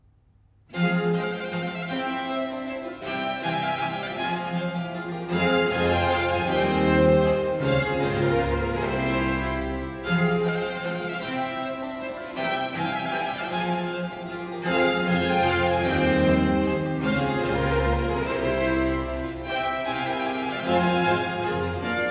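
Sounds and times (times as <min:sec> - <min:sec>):
concerto in G minor first movement vivace: 0:00.7 - 0:22.0.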